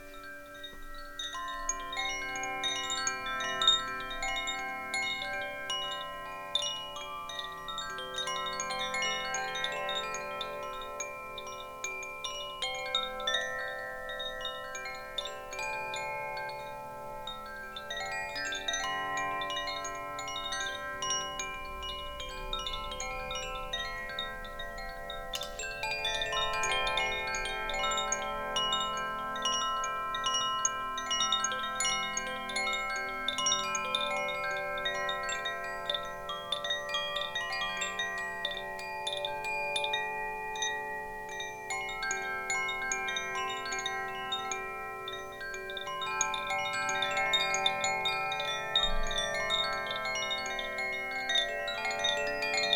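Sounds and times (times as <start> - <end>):
chimes: 0.0 - 52.7.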